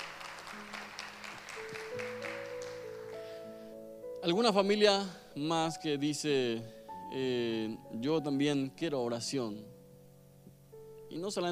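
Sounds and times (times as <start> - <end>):
audience applause: 0.0 - 3.4
sustained keyboard or organ chords: 0.0 - 11.5
speech: 4.2 - 9.7, 11.1 - 11.5.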